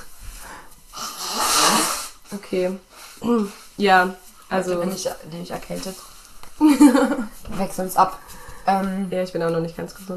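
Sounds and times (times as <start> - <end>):
forceful nose blowing: 0.0 - 2.3
speech: 2.3 - 10.1.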